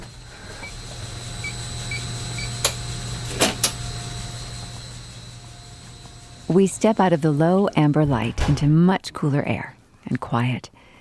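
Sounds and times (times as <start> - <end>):
faint high whine: 0.0 - 8.4
large HVAC system humming: 0.0 - 10.9
speech: 6.5 - 10.8.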